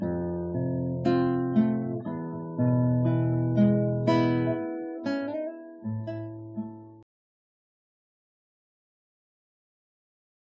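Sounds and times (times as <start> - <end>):
guitar playing: 0.0 - 7.0.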